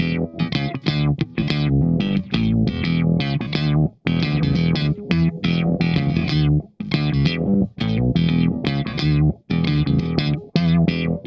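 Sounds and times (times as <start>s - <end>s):
funk guitar shot: 0.0s - 11.2s.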